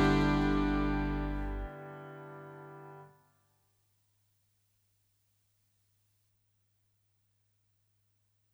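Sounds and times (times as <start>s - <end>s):
tango music: 0.0s - 1.7s.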